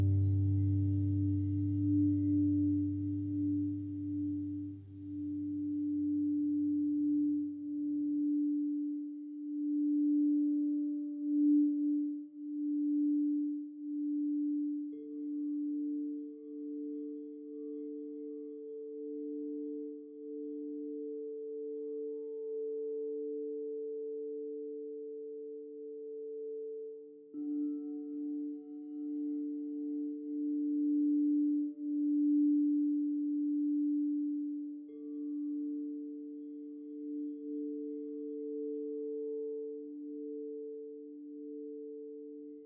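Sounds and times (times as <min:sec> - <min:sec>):
deep low drone: 0:00.0 - 0:06.3
sustained singing bowl tones in a sound bath: 0:00.0 - 0:42.6.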